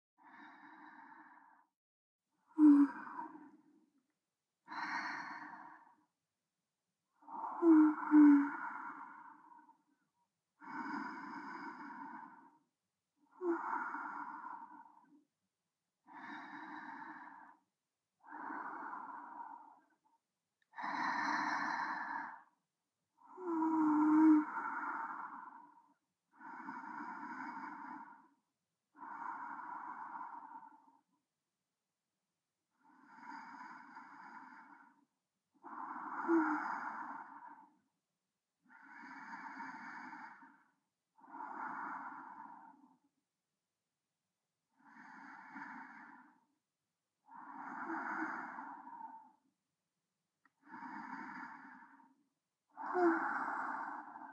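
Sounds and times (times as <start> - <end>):
breathing of a person lying alongside, centred: 0.2 - 1.8, 4.6 - 6.2, 7.2 - 10.0, 10.6 - 15.3, 16.0 - 22.6, 23.2 - 31.1, 32.7 - 37.9, 38.6 - 43.1, 44.7 - 46.5, 47.2 - 49.5, 50.4 - 54.3.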